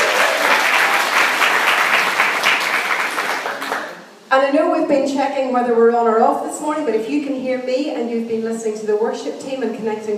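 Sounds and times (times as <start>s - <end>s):
audience applause: 0.0s - 4.0s
speech: 4.3s - 10.1s.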